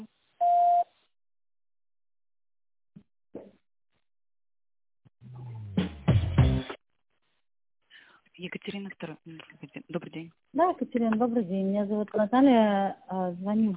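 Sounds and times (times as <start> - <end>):
phone system beep tone: 0.4 - 0.9
speech: 8.4 - 13.7.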